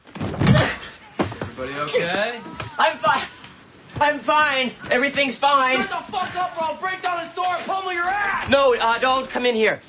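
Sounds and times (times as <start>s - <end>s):
person falling out of bed: 0.0s - 1.5s
speech: 1.6s - 3.3s, 4.0s - 9.8s.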